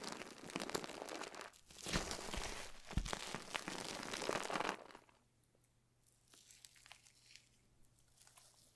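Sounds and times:
slime sounds: 0.0s - 5.2s.

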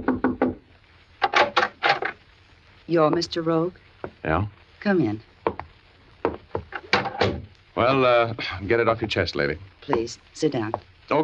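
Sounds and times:
knocking on a wooden door: 0.0s - 0.6s, 5.5s - 7.4s
speech: 2.9s - 5.3s, 7.8s - 11.2s.

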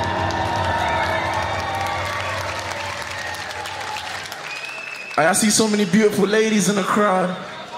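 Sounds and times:
concert audience shouts and whoops: 0.0s - 5.0s
concert audience clapping: 0.0s - 5.4s
concert audience cheering: 0.0s - 7.7s
speech: 5.2s - 7.5s.

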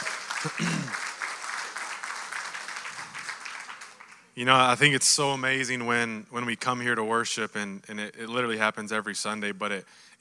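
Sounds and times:
church congregation clapping hands during Sunday worship: 0.0s - 4.8s
speech: 0.4s - 1.0s, 4.4s - 10.1s.

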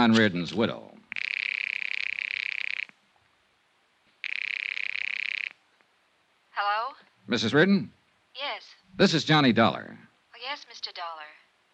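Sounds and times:
speech: 0.0s - 0.9s, 7.3s - 11.3s
telephone ringing: 1.1s - 2.9s, 4.2s - 5.6s.

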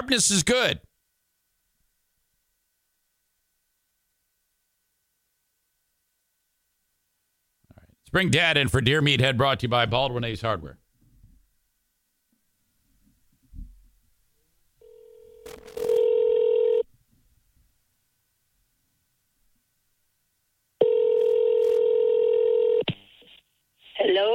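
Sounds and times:
speech: 0.1s - 0.9s, 8.1s - 10.8s
telephone ringing tones: 14.8s - 16.9s, 20.8s - 22.9s
telephone dialing: 15.4s - 16.8s, 20.8s - 22.8s.

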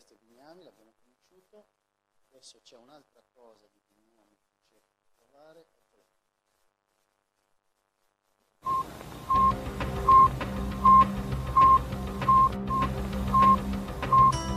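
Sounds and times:
Sputnik 1 satellite radio beeping: 8.6s - 14.4s.

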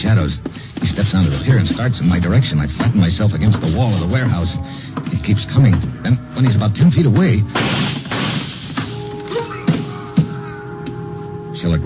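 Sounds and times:
speech: 0.0s - 8.0s, 11.6s - 11.8s
gunshots: 7.5s - 9.0s.

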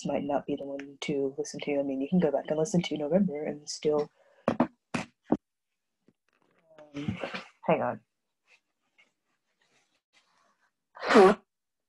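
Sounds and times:
speech: 0.0s - 4.2s, 6.9s - 8.1s, 11.0s - 11.4s
person blowing nose: 11.0s - 11.5s.

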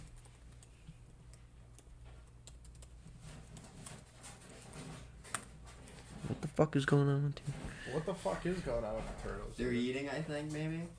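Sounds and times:
typing on a computer keyboard: 0.0s - 4.4s
speech: 6.6s - 10.9s.

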